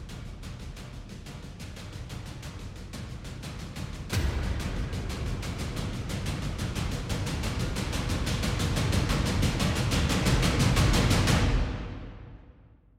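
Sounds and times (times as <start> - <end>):
hybrid trailer drums: 0.0 - 12.7
hybrid trailer hits: 4.1 - 6.9.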